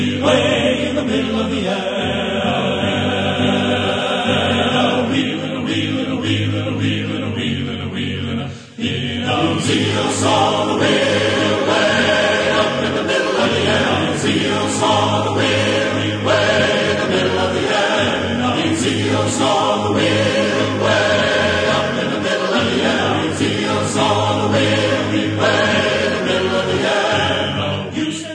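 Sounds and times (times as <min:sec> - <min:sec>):
men's choir singing: 0:00.0 - 0:28.3.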